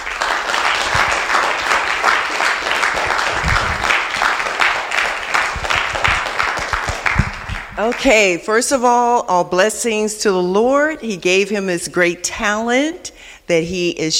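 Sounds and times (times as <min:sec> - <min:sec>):
audience applause welcoming a speaker: 0:00.0 - 0:08.1
speech: 0:07.8 - 0:14.1.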